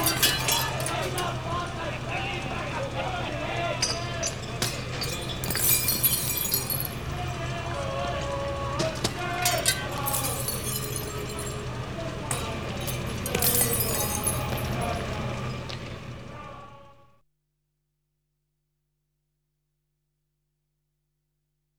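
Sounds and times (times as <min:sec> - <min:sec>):
angry crowd rioting: 0:00.0 - 0:15.6.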